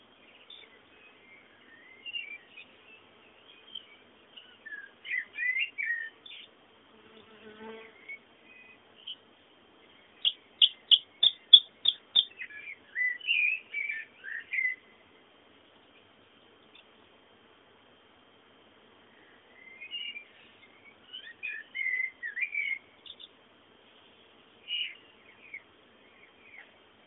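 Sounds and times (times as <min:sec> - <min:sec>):
bird song: 0:00.0 - 0:17.0, 0:19.0 - 0:23.4, 0:24.1 - 0:27.0
faint hiss: 0:00.0 - 0:27.0.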